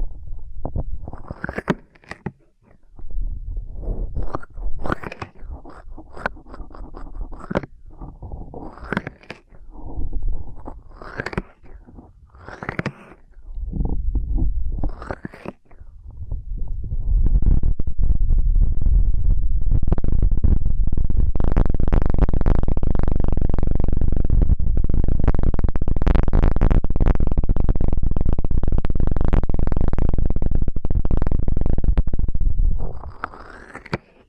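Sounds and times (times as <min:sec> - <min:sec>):
dense loud steady rumbling scrape of ear cleaning: 0:00.0 - 0:34.2
ear cleaning rubbing and scratching: 0:00.3 - 0:16.0.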